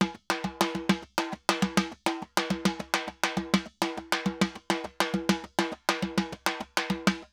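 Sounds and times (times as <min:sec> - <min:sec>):
timba Latin drums and percussion: 0:00.0 - 0:07.3.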